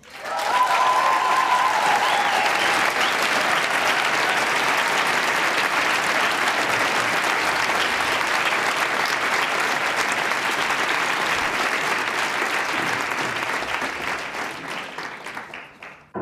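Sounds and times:
cheers: 0.0 - 10.1
large audience applause: 0.0 - 16.1.

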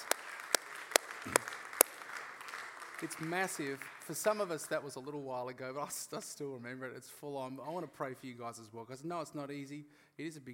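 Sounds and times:
audience round of applause: 0.0 - 4.8
speech: 3.0 - 10.5.

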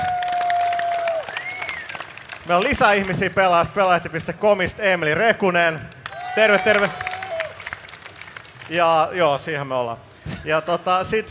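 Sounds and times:
audience applause: 0.0 - 3.2, 6.0 - 9.1
speech: 2.4 - 7.1, 8.7 - 11.2.

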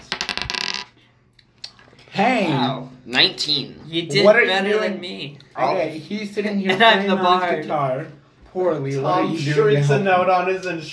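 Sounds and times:
dice rattling and tumbling across a hard surface: 0.0 - 0.9
speech: 2.2 - 10.9.

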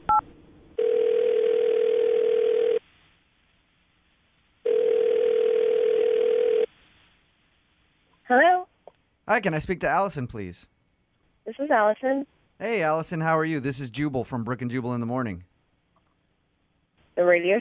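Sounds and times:
telephone ringing while placing a call: 0.1 - 2.8, 4.7 - 6.7
speech: 9.3 - 10.8, 11.6 - 15.5, 17.3 - 17.6.

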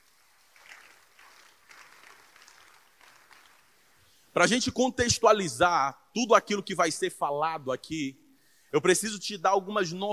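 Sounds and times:
audience applause: 0.4 - 3.8
speech: 4.4 - 10.1.

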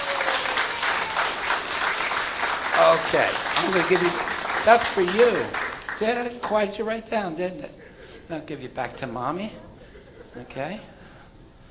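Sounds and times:
audience applause: 0.0 - 6.5
laughter: 2.8 - 6.3, 7.4 - 11.1
speech: 3.0 - 9.7, 10.4 - 10.9.

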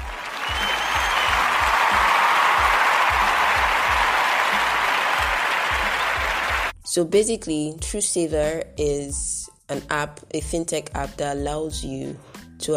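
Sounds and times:
applause: 0.0 - 6.7
speech: 6.9 - 12.7.

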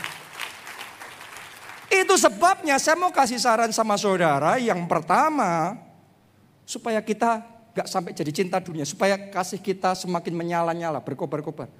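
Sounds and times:
crowd applause: 0.0 - 2.0
speech: 2.1 - 5.9, 6.7 - 11.7.

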